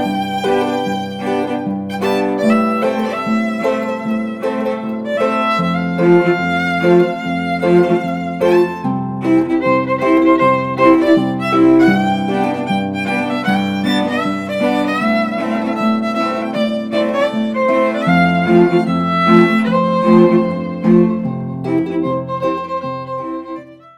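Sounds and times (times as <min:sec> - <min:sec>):
harp trio playing: 0:00.0 - 0:23.7.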